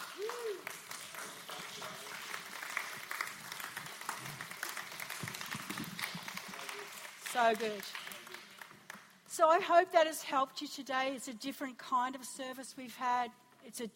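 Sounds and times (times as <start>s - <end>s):
audience applause: 0.0s - 9.1s
speech: 7.4s - 8.0s, 9.4s - 13.9s.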